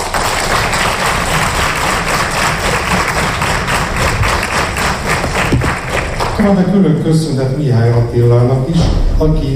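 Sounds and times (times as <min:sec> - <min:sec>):
crowd applauding: 0:00.0 - 0:06.7
speech: 0:06.4 - 0:09.5.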